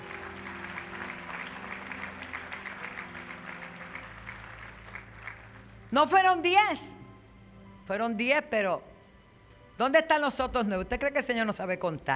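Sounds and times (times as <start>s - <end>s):
audience applause: 0.0s - 5.9s
speech: 5.9s - 6.9s, 7.9s - 8.9s, 9.8s - 12.1s.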